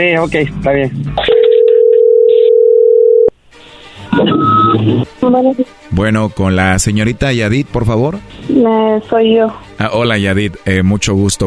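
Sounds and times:
speech: 0:00.0 - 0:01.2, 0:04.2 - 0:11.4
phone line noise: 0:01.2 - 0:03.3, 0:04.2 - 0:04.8
telephone ringback tone: 0:01.2 - 0:03.3.

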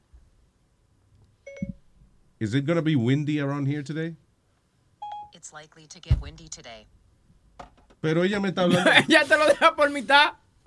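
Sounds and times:
phone voice assistant activation chime: 0:01.5 - 0:01.8
speech: 0:02.4 - 0:04.2, 0:05.4 - 0:07.0, 0:07.6 - 0:10.4
soft low thump: 0:06.1 - 0:06.5
laughter: 0:08.6 - 0:10.1.

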